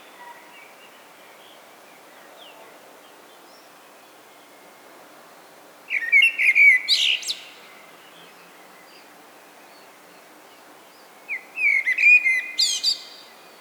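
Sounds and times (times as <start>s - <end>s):
common blackbird singing: 5.9s - 7.8s, 11.3s - 13.4s.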